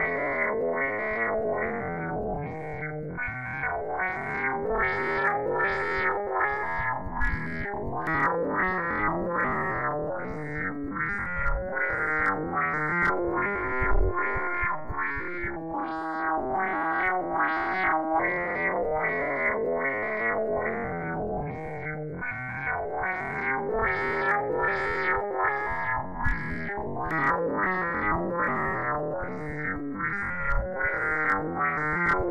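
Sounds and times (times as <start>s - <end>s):
noise: 0.0s - 32.2s.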